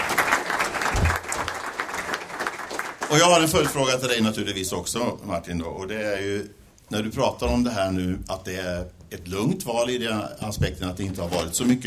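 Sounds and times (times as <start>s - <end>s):
audience applause at a Swedish panel event: 0.0s - 3.9s
speech: 3.1s - 11.8s.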